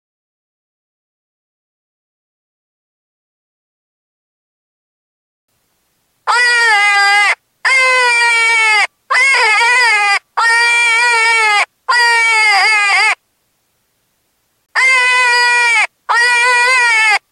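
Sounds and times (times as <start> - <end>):
cottontail rabbit distress screaming: 6.3 - 13.2, 14.7 - 17.3.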